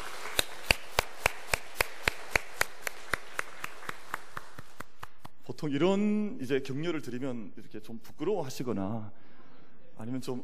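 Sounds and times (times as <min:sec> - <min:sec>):
group clapping: 0:00.0 - 0:05.4
speech: 0:05.6 - 0:09.3, 0:10.0 - 0:10.4.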